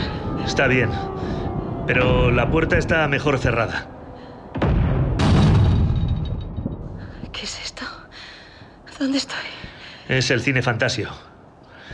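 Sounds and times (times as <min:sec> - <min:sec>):
speech: 0:00.5 - 0:03.9, 0:09.0 - 0:11.3
bombardment explosions: 0:04.5 - 0:07.0.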